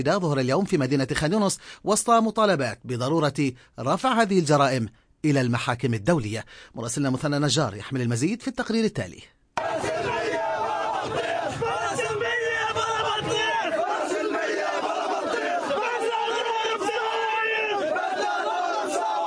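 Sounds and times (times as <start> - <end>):
speech: 0.0 - 10.2
mourners crying out at a funeral procession: 9.6 - 19.2.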